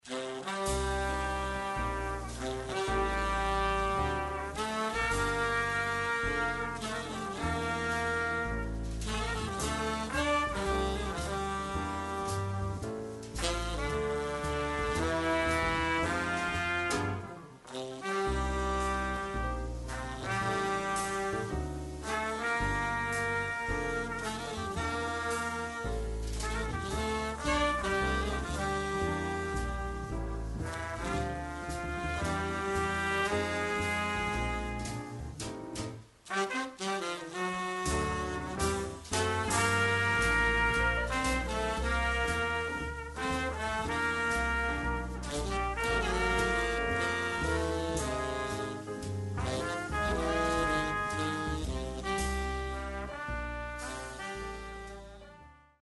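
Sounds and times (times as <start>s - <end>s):
jazz group: 0.0s - 55.8s.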